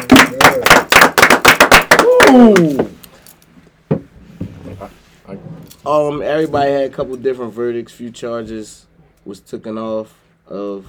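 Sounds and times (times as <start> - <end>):
people clapping: 0.0 - 3.0
speech: 2.3 - 3.0, 5.9 - 10.8.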